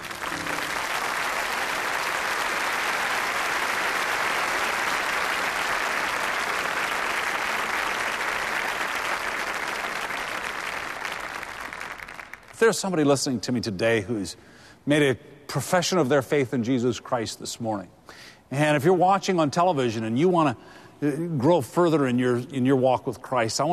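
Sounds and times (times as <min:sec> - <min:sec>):
congregation clapping during a church service: 0:00.0 - 0:13.3
speech: 0:12.6 - 0:23.7.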